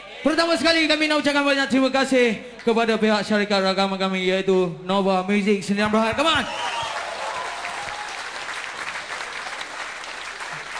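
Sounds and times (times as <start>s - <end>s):
speech: 0.2s - 6.6s
audience applause at a rock band concert at Planet Hollywood: 6.5s - 10.7s.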